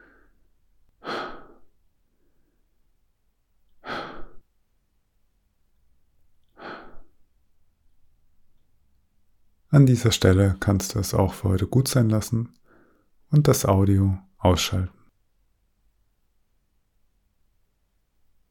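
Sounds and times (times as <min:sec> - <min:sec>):
slow deep breathing in a breathing exercise: 0:00.0 - 0:02.8, 0:03.8 - 0:04.5, 0:06.5 - 0:07.2, 0:12.6 - 0:13.2
speech: 0:09.7 - 0:12.6, 0:13.3 - 0:15.0.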